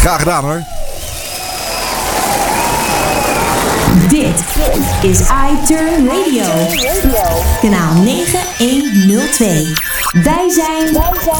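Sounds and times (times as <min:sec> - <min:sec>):
speech: 0:00.0 - 0:00.8, 0:04.0 - 0:11.3
applause: 0:01.4 - 0:03.9.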